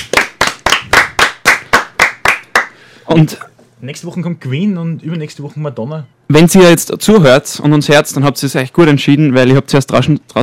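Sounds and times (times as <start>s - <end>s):
audience applause: 0.0s - 2.7s
speech: 3.1s - 10.4s.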